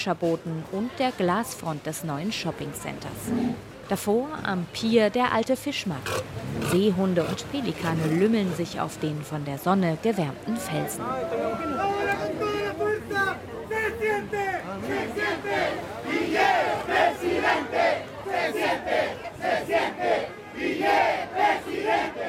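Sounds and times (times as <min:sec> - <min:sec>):
speech: 0:00.0 - 0:12.5
outdoor crowd noise and chatter: 0:00.0 - 0:22.2
small group chanting election slogans at market: 0:14.8 - 0:22.2.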